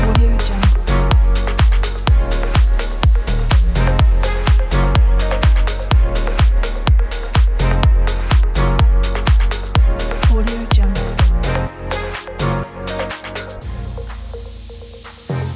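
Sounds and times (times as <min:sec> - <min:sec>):
energetic deep house music: 0:00.0 - 0:15.5.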